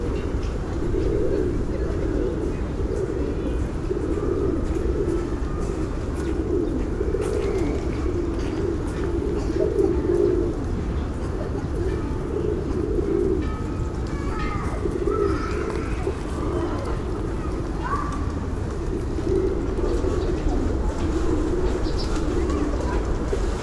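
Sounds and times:
pigeons cooing: 0.0s - 23.6s.

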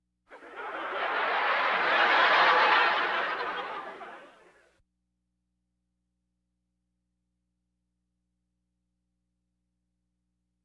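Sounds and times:
audience laughter: 0.3s - 4.6s.

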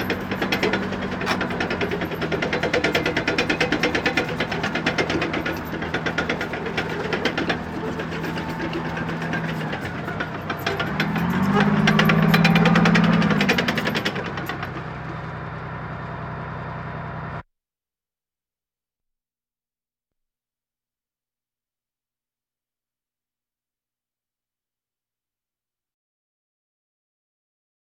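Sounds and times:
military vehicles: 0.0s - 17.4s.

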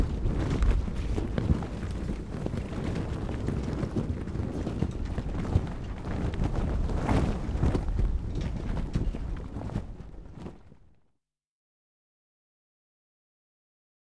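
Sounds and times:
sail being hoisted on a boat: 0.0s - 10.8s.

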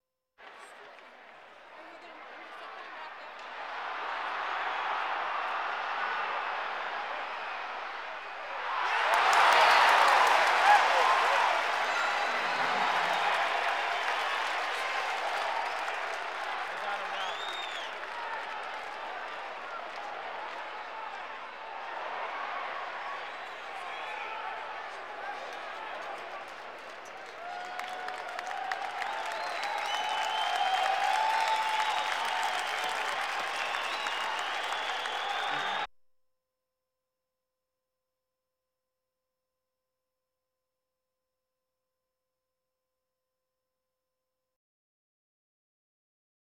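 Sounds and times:
sports crowd: 0.4s - 35.9s.

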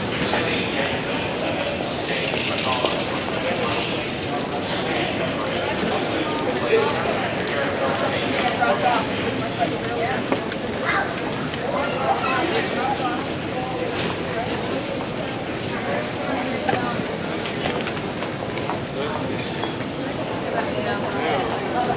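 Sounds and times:
crowd in an airport hall: 0.0s - 21.9s.

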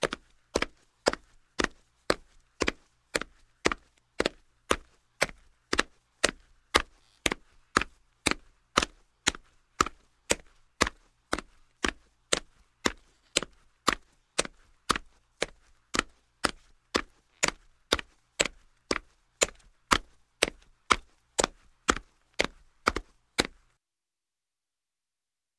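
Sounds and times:
boot footsteps on linoleum: 0.0s - 23.7s.

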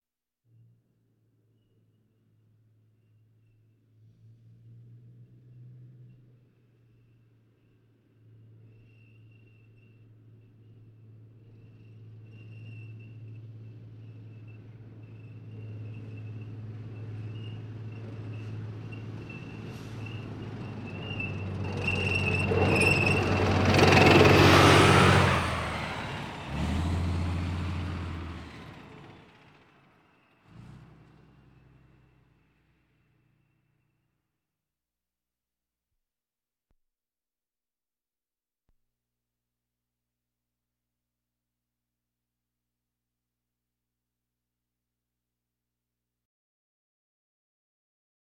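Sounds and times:
military vehicles: 4.7s - 34.1s.

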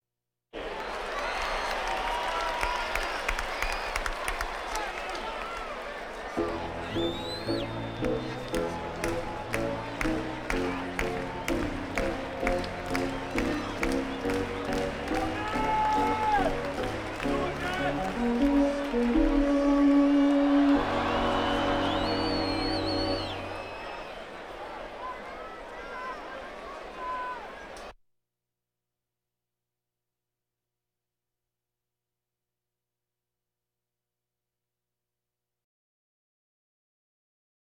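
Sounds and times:
crowds: 0.6s - 28.0s.

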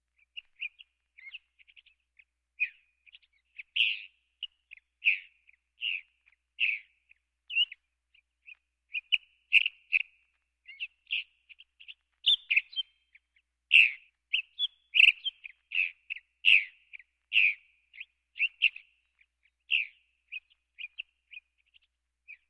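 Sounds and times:
birds: 0.0s - 22.4s.

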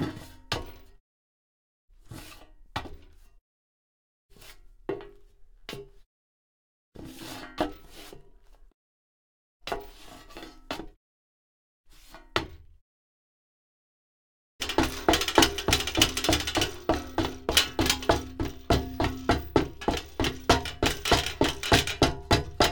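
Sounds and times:
metal grate rattling: 14.6s - 22.6s.

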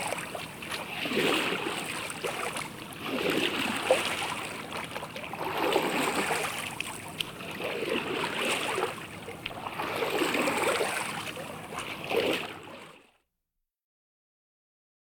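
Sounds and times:
canoe on board during watersport in nature: 0.0s - 13.1s.

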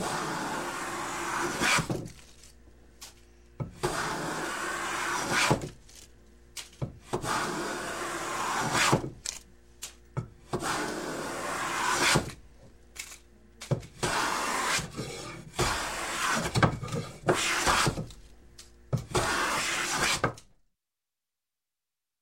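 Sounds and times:
hand plane planing wood: 0.0s - 2.0s, 3.8s - 5.6s, 7.1s - 9.0s, 10.5s - 12.3s, 14.0s - 18.0s, 19.1s - 20.3s.

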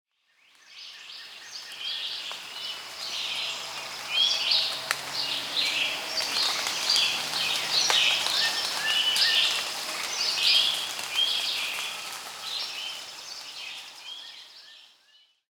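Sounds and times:
crowd of monkeys: 2.4s - 14.2s.

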